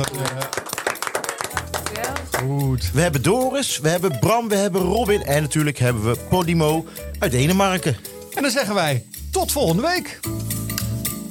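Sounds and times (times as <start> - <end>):
speech: 0.0 - 0.6, 2.4 - 10.5
small round of applause: 0.0 - 2.8.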